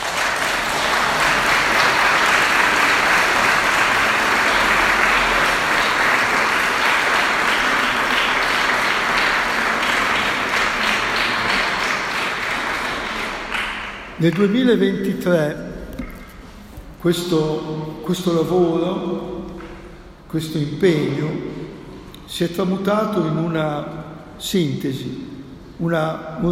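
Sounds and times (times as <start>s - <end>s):
audience applause: 0.0s - 14.2s
speech: 14.2s - 15.7s, 17.0s - 19.4s, 20.3s - 21.5s, 22.3s - 26.5s.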